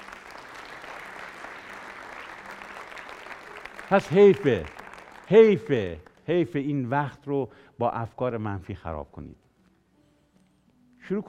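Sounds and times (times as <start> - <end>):
church congregation clapping during a church service: 0.0 - 7.0
speech: 3.9 - 9.4, 11.1 - 11.2.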